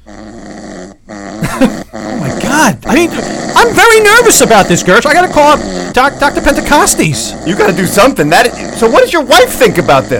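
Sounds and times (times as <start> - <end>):
snoring played back from a voice recorder: 0.0 - 10.1
speech: 1.6 - 10.1.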